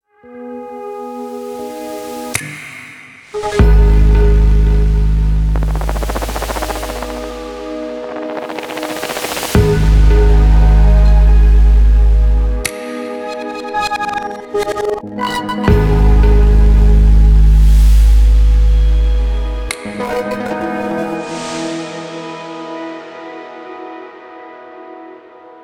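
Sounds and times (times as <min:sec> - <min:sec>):
suspense tension music: 0:03.4 - 0:14.3, 0:15.7 - 0:19.9.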